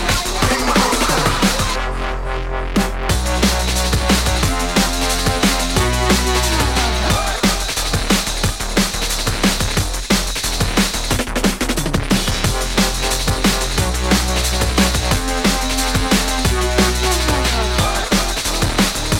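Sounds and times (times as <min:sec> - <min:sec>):
drum and bass music from vinyl: 0:00.0 - 0:19.1.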